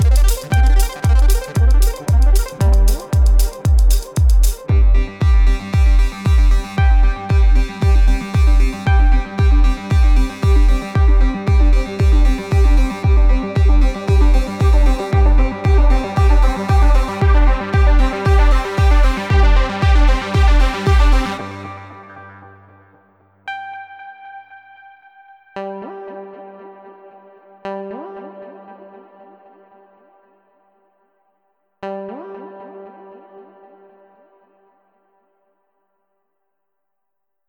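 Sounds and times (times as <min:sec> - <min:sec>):
pulsing underscore music: 0:00.0 - 0:29.0.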